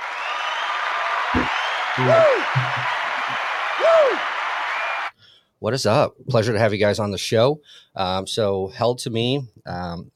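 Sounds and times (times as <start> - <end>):
audience applause: 0.0 - 5.1
speech: 1.4 - 4.4, 5.6 - 10.1.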